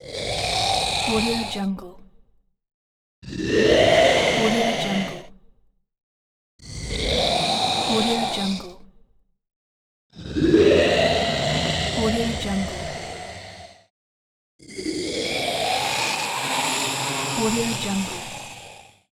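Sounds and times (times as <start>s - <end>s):
zombie growl: 0.0s - 1.5s, 3.2s - 5.2s, 6.6s - 8.6s, 10.2s - 13.9s, 14.6s - 19.0s.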